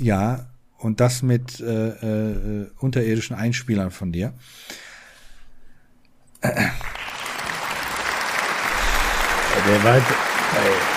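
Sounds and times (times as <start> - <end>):
speech: 0.0 - 4.9, 6.4 - 6.9, 9.6 - 10.9
slow applause: 6.6 - 10.9.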